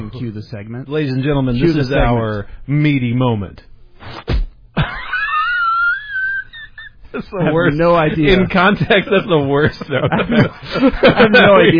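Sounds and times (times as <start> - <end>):
speech: 0.0 - 4.4, 7.1 - 11.7
punch to the stomach sound effect: 4.0 - 4.6
laughter: 4.8 - 11.7.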